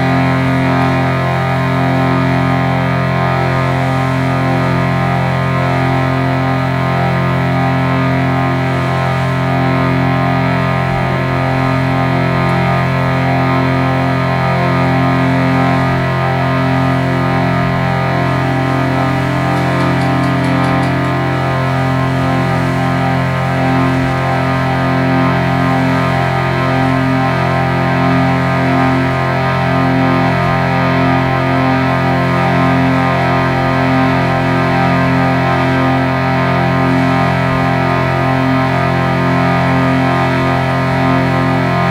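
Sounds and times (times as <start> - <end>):
ocean resonances: 0.0 - 41.8
seagull wings flapping: 18.4 - 24.7.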